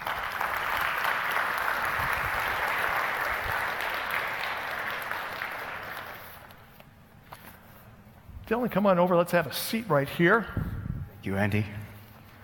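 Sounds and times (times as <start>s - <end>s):
applause: 0.0s - 6.6s
speech: 8.5s - 10.6s, 11.2s - 11.8s.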